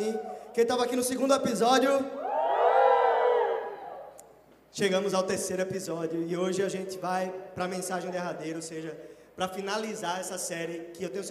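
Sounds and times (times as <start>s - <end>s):
speech: 0.0s - 2.2s, 4.7s - 11.2s
live audience cheering and shouting: 2.2s - 4.2s.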